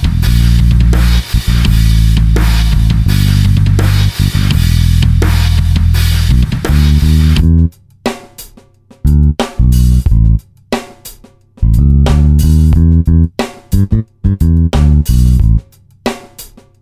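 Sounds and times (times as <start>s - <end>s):
drum loop from a synthesizer expansion board: 0.0s - 16.7s.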